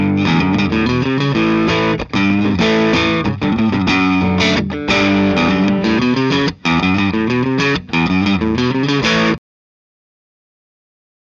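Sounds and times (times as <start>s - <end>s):
electric guitar with light dirt on bridge and neck pickups: 0.0s - 9.4s.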